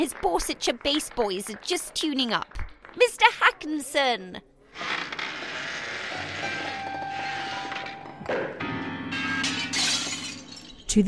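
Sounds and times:
speech: 0:00.0 - 0:05.0
grand piano crashing through plate glass window: 0:06.1 - 0:10.9.

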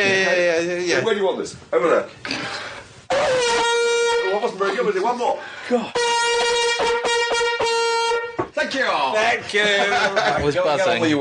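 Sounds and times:
speech: 0:00.0 - 0:03.4, 0:04.5 - 0:07.0, 0:08.7 - 0:11.1
vuvuzela being blown: 0:03.1 - 0:04.6, 0:05.9 - 0:08.5
laughter: 0:09.3 - 0:11.1.

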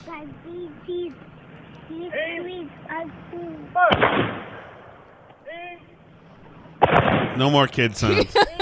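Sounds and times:
speech: 0:00.1 - 0:04.7, 0:05.5 - 0:06.0, 0:06.9 - 0:08.5
booming shot from a 21-gun salute at a ceremony in Exeter, New Hampshire: 0:03.8 - 0:05.1, 0:06.8 - 0:07.5
laughter: 0:08.0 - 0:08.5.

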